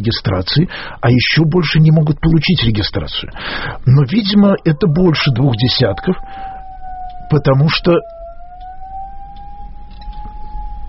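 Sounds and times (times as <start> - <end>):
speech: 0.0 - 6.5, 7.3 - 8.2
fire alarm siren during a radio broadcast: 3.8 - 10.8.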